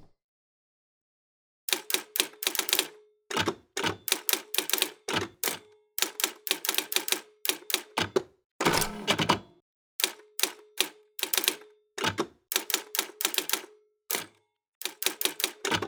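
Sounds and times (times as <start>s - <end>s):
Brother typewriter typing: 1.7s - 2.9s, 4.1s - 8.1s, 8.7s - 9.3s, 10.0s - 14.3s, 14.8s - 15.8s.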